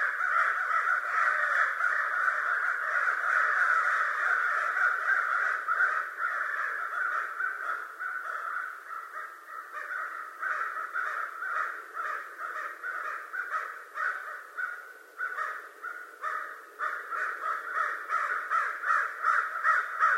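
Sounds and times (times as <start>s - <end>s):
American crow giving harsh raspy caws: 0.0s - 20.1s.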